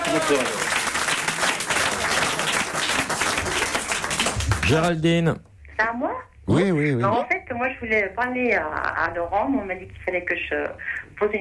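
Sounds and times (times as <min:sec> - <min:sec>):
applause: 0:00.0 - 0:05.0
speech: 0:00.1 - 0:00.6, 0:04.7 - 0:11.3.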